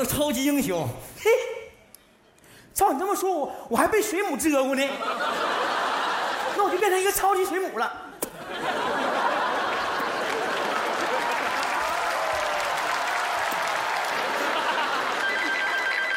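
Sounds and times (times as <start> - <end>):
speech: 0.0 - 1.5, 2.8 - 5.8, 6.6 - 8.0
laughter: 4.9 - 7.1, 8.3 - 12.6, 13.8 - 16.1
audience applause: 8.8 - 16.1
phone ringtone: 15.0 - 16.1.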